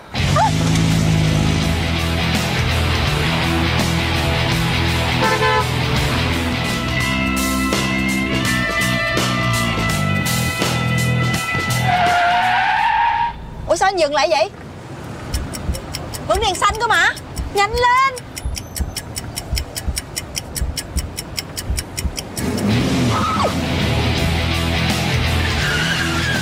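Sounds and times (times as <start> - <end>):
car engine roaring: 0.0 - 13.8, 18.7 - 26.4
car horn honking: 5.1 - 5.8
tyres screeching on a speeding car in a chase: 11.6 - 13.9, 15.2 - 23.6, 25.2 - 26.4
speech: 14.0 - 14.6, 16.3 - 18.0.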